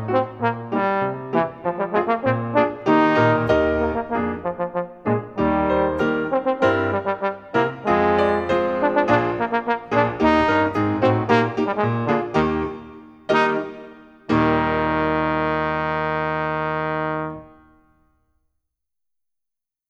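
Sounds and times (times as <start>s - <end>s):
trombone solo: 0.0s - 17.8s.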